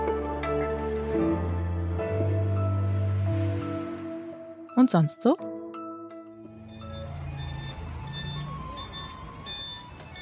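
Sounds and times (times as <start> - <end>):
Taiwanese garbage truck electronic melody: 0.0 - 10.2
speech: 4.8 - 5.5
garbage truck engine rumble: 6.5 - 10.2
street noise: 6.5 - 10.2.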